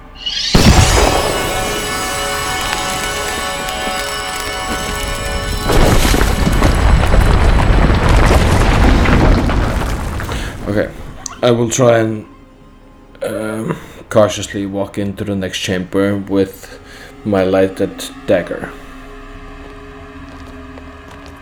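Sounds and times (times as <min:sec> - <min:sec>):
explosion blowing apart a brick wall, tabletop game sound effect: 0:00.0 - 0:11.6
heavier crashing noise of brick wall: 0:00.4 - 0:11.3
speech: 0:10.8 - 0:12.3, 0:13.2 - 0:18.8.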